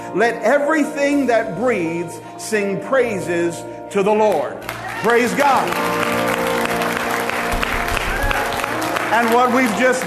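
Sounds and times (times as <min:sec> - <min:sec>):
speech: 0:00.1 - 0:06.2, 0:09.1 - 0:10.0
audience clapping hands: 0:04.6 - 0:10.0.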